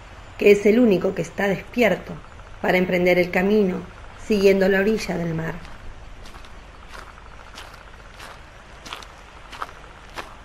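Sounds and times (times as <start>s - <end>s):
speech: 0.4s - 5.7s
sandaled footsteps crunching on gravel: 5.4s - 10.4s.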